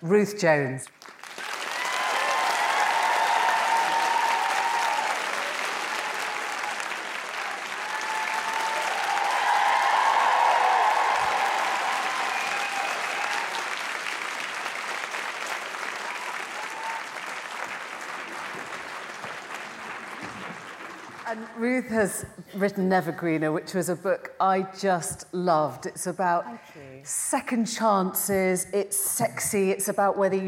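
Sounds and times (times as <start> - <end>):
speech: 0.0 - 1.2, 21.8 - 30.4
Palladium audience applause welcoming novelist Ruth Jones: 1.0 - 21.5.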